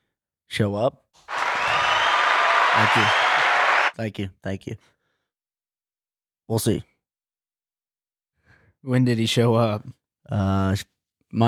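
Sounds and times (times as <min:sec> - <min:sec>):
speech: 0:00.6 - 0:01.3, 0:02.8 - 0:03.2, 0:04.0 - 0:05.0, 0:06.5 - 0:06.9, 0:08.8 - 0:11.4
recorded applause sound effect from a soundboard button: 0:01.3 - 0:04.0.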